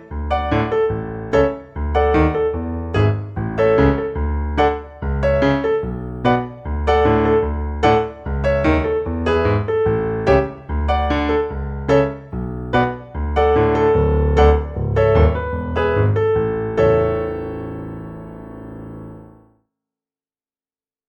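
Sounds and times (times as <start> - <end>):
piano playing: 0.0 - 19.4.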